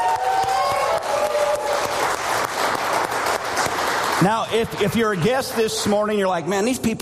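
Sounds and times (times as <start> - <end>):
shouts and whoops: 0.0 - 2.1
audience cheering and clapping: 0.0 - 6.2
speech: 4.2 - 7.0.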